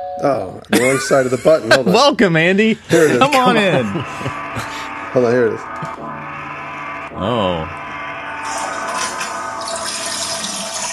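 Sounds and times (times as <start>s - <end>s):
speech: 0.2s - 6.0s, 7.2s - 7.8s
laughter: 0.7s - 4.9s
toilet flushing: 8.4s - 10.9s.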